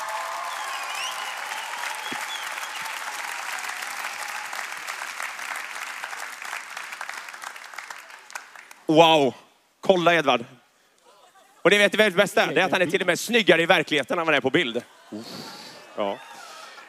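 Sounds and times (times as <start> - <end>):
warm audience applause: 0.0 - 8.8
speech: 8.9 - 10.6, 11.6 - 16.3.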